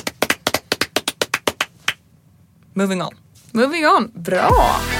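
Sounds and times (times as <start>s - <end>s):
clapping: 0.0s - 2.0s
speech: 2.8s - 4.9s.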